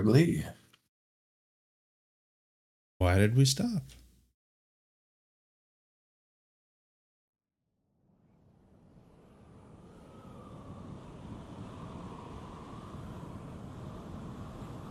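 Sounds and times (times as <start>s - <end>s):
speech: 0.0s - 0.6s, 3.0s - 4.0s
howling wind sound effect: 7.8s - 14.8s
faint whistling tone: 8.1s - 14.8s.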